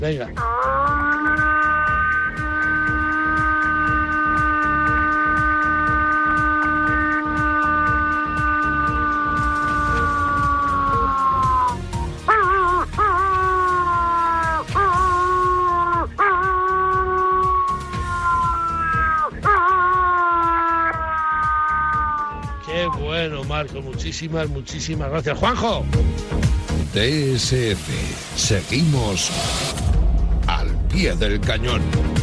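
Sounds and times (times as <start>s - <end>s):
speech: 0.0s - 0.6s, 23.5s - 29.8s, 31.0s - 32.1s
human imitating a wolf howl call: 0.4s - 23.1s.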